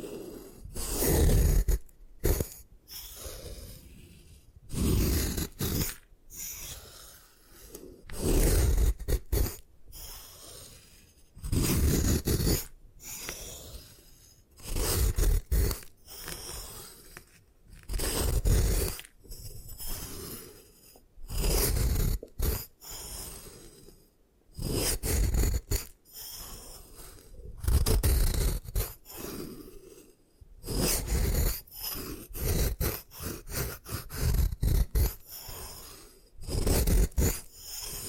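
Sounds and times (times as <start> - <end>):
gym chalk being crushed: 0.0 - 22.7, 24.6 - 30.0, 30.6 - 35.3, 36.4 - 38.0.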